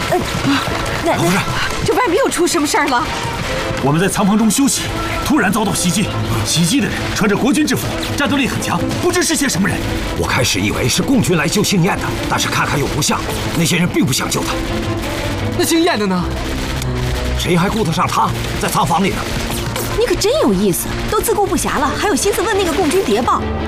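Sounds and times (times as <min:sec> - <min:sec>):
bursts of gunfire: 0:00.0 - 0:23.5
heavier booming blasts: 0:00.0 - 0:23.5.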